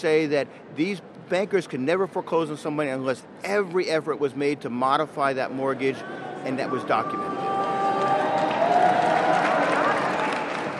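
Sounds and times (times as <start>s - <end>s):
speech: 0.0s - 7.4s
crowd applause: 7.0s - 10.7s.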